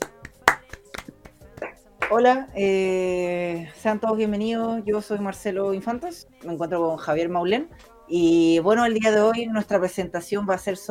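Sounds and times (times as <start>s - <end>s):
applause: 0.0s - 2.2s
speech: 2.1s - 10.8s.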